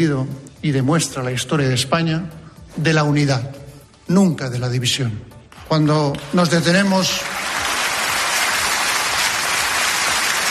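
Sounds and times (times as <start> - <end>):
speech: 0.0 - 7.4
long applause ovation: 5.5 - 10.4.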